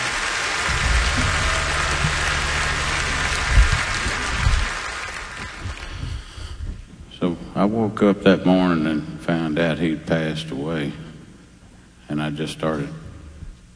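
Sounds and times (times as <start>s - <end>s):
crowd applause: 0.0s - 6.1s
speech: 7.6s - 11.0s, 12.1s - 13.0s.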